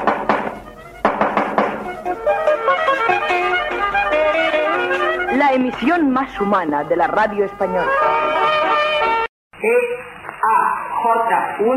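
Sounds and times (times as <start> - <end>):
knocking on a door: 0.0 - 2.2
bright sustained musical tones: 0.0 - 9.3
speech: 5.5 - 8.1, 9.6 - 10.0, 11.0 - 11.7.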